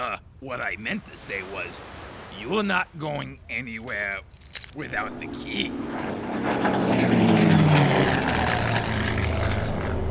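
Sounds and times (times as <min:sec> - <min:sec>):
speech: 0:00.0 - 0:08.2
seaplane taking off: 0:05.0 - 0:10.0.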